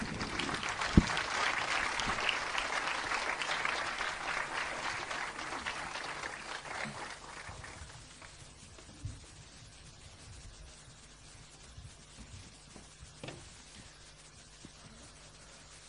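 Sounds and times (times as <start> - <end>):
crowd applause: 0.0 - 8.4.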